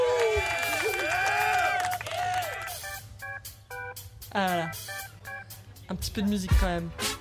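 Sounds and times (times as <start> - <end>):
applause sound effect from soundboard: 0.0 - 3.0
speech: 4.4 - 4.8, 5.9 - 7.1.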